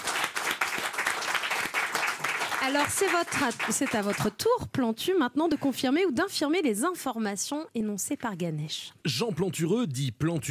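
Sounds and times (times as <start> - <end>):
audience applause in a French television studio: 0.0 - 4.3
speech: 2.6 - 10.4.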